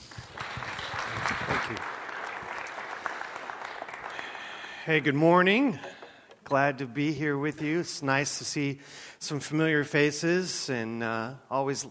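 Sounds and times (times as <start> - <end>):
church congregation clapping to welcome a guest speaker: 0.0 - 6.2
speech: 1.7 - 1.9, 4.9 - 5.9, 6.5 - 11.8.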